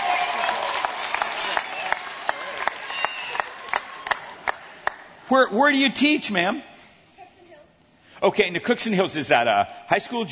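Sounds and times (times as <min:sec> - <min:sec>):
audience applause: 0:00.0 - 0:05.1
speech: 0:05.3 - 0:06.7, 0:08.2 - 0:10.3.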